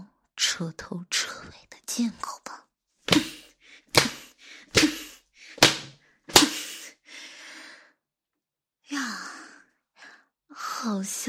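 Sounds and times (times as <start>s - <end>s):
speech: 0.6s - 2.6s, 10.8s - 11.2s
leather whip lashing: 3.1s - 3.4s, 4.0s - 6.6s.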